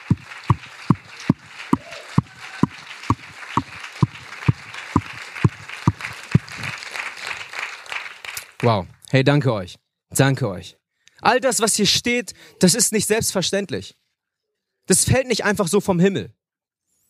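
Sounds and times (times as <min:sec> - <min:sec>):
crowd noise: 0:00.0 - 0:08.6
audience clapping in unison to a steady quick beat: 0:00.0 - 0:09.0
speech: 0:08.6 - 0:14.0, 0:14.9 - 0:16.4.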